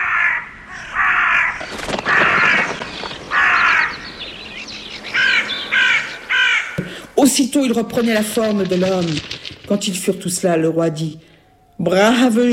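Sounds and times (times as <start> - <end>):
flock of crows cawing: 0.0 - 7.2
speech: 7.3 - 12.5.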